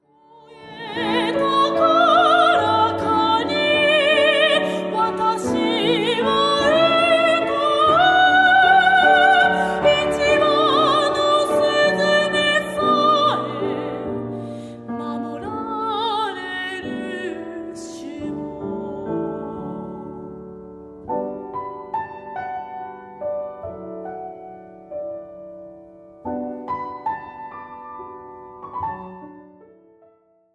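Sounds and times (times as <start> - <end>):
person singing: 0.0 - 20.5.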